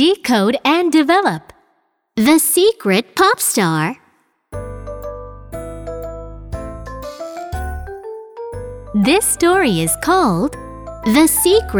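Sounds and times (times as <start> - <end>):
speech: 0.0 - 1.6, 2.2 - 4.7, 9.0 - 11.7
bell-like chiming jingle signalling a page turn: 4.6 - 11.4.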